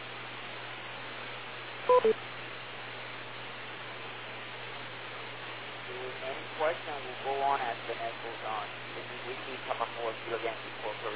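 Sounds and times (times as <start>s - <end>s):
radio static hiss: 0.0s - 11.1s
radio net beep tone: 1.9s - 2.2s
speech: 1.9s - 2.3s, 6.6s - 11.1s.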